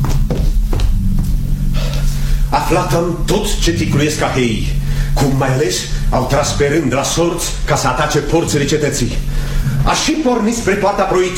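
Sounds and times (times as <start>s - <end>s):
footsteps of a man running across a stage: 0.0s - 1.4s
low steady hum: 0.0s - 11.3s
speech: 2.7s - 11.3s.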